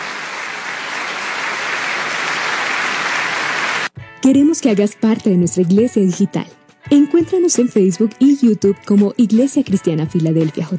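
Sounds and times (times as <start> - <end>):
applause: 0.0 - 3.9
speech: 4.2 - 10.7.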